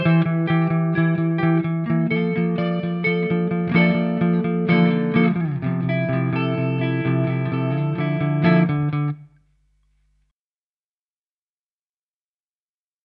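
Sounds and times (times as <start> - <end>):
Harley Benton electric guitar, neck pickup, clean: 0.0 - 9.4.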